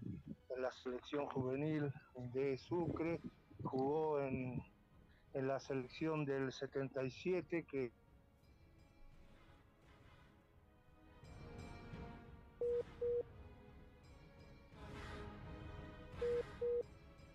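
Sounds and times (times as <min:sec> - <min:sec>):
speech: 0:00.5 - 0:04.7, 0:05.3 - 0:08.0
telephone call-waiting beeps: 0:12.6 - 0:13.2, 0:16.2 - 0:16.8.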